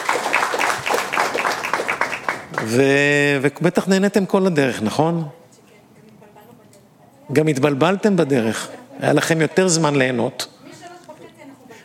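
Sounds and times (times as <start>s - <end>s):
audience applause: 0.0s - 3.2s
speech: 2.6s - 5.4s, 7.3s - 10.6s.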